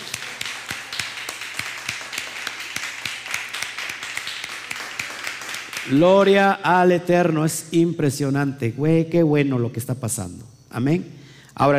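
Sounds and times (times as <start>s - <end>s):
applause: 0.0s - 6.4s
speech: 5.8s - 11.7s.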